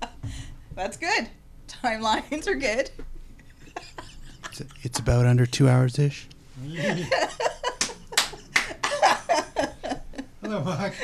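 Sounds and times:
speech: 0:00.8 - 0:03.1, 0:04.6 - 0:07.5, 0:10.5 - 0:11.0
laughter: 0:03.4 - 0:05.8, 0:06.7 - 0:11.0
hand clap to sync audio: 0:07.8 - 0:09.0.

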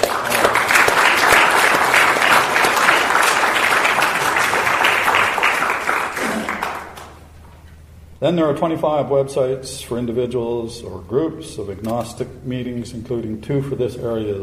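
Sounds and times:
crowd applauding: 0:00.0 - 0:07.2
speech: 0:08.2 - 0:14.4.

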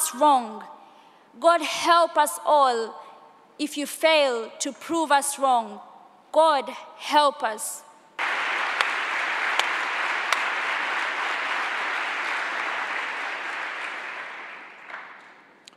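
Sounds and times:
speech: 0:00.1 - 0:03.0, 0:03.6 - 0:07.9
long warm audience applause: 0:08.2 - 0:15.4.

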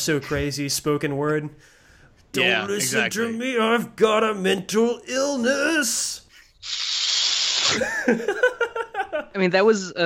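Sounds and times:
speech: 0:00.0 - 0:06.9, 0:07.7 - 0:08.5, 0:09.3 - 0:10.0
hissing inhale through clenched teeth: 0:06.6 - 0:07.9
laughter: 0:07.7 - 0:09.4.

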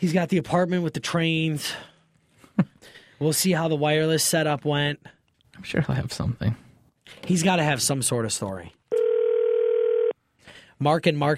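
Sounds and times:
speech: 0:00.0 - 0:01.9, 0:02.6 - 0:08.8, 0:10.8 - 0:11.3
telephone dial tone: 0:08.9 - 0:10.1.

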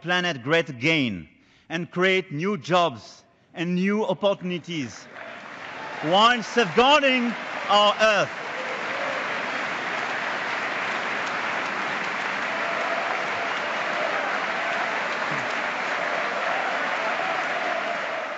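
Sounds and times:
speech: 0:00.0 - 0:05.2, 0:06.0 - 0:08.4
audience standing and applauding: 0:05.0 - 0:18.3.

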